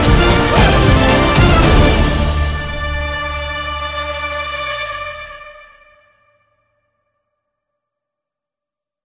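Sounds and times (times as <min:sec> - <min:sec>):
instrumental theme music: 0:00.0 - 0:06.8.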